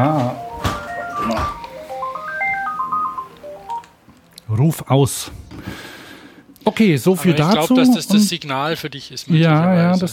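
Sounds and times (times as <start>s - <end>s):
speech: 0.0s - 0.4s, 4.6s - 5.8s, 6.6s - 10.1s
phone ringing: 0.0s - 4.0s.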